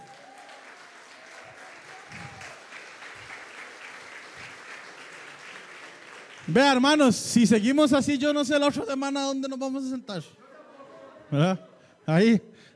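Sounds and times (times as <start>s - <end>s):
audience applause: 0.0s - 7.0s
speech: 6.5s - 10.4s, 11.3s - 12.7s.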